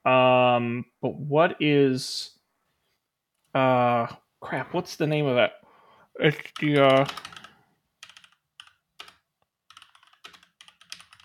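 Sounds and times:
speech: 0.0s - 2.4s, 3.6s - 5.6s, 6.2s - 7.4s
typing on a computer keyboard: 6.6s - 11.2s.

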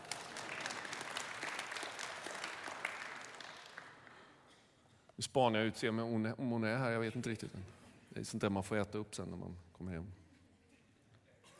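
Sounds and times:
audience applause: 0.0s - 4.3s
speech: 5.2s - 10.2s.

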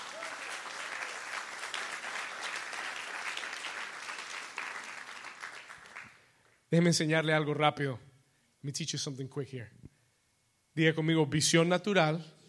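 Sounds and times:
loud audience applause: 0.0s - 6.2s
speech: 6.7s - 9.8s, 10.8s - 12.4s.

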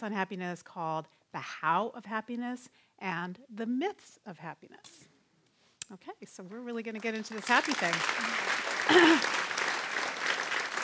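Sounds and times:
speech: 0.0s - 5.1s, 5.9s - 9.4s
audience applause: 7.2s - 10.8s.

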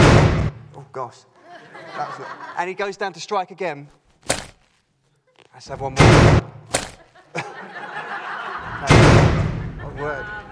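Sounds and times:
speech: 1.0s - 4.4s, 5.6s - 6.5s, 10.0s - 10.4s
laughter: 1.4s - 2.9s, 6.9s - 10.5s
gate crashing: 5.9s - 7.0s, 8.8s - 9.8s.

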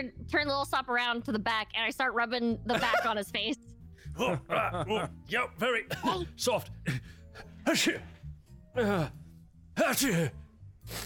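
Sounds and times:
speech: 0.0s - 8.1s, 8.8s - 9.2s, 9.8s - 11.0s
person sneezing: 9.8s - 11.0s.

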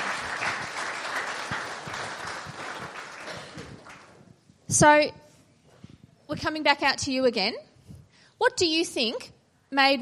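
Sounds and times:
audience clapping: 0.0s - 4.3s
speech: 4.7s - 5.2s, 6.4s - 7.7s, 8.4s - 10.0s.

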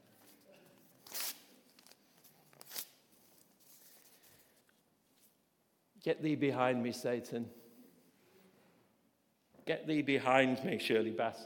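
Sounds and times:
something being torn up by hand: 1.0s - 3.0s
speech: 6.0s - 7.6s, 9.7s - 11.4s.

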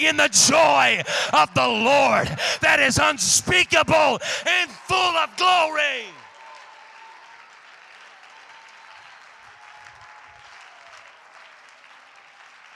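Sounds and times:
speech: 0.0s - 6.1s
audience clapping: 4.1s - 12.7s.

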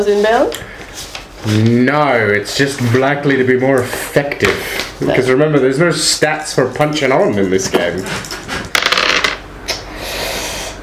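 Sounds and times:
speech: 0.0s - 8.4s
two six-sided dice being rolled: 8.8s - 9.4s.

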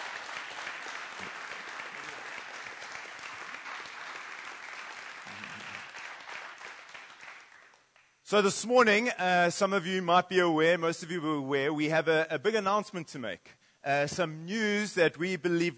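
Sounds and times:
audience applauding: 0.0s - 8.1s
speech: 8.3s - 15.7s.

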